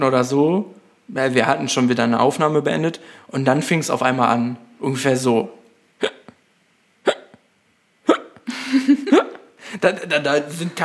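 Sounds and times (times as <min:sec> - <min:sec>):
speech: 0:00.0 - 0:06.2, 0:09.8 - 0:10.8
hard hiccups: 0:06.0 - 0:06.4, 0:07.0 - 0:08.5.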